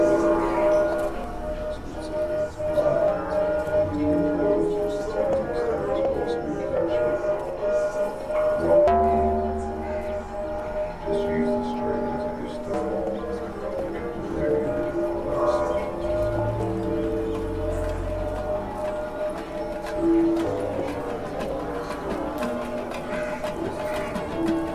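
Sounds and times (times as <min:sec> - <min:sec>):
ambient soundscape: 0:00.0 - 0:24.7.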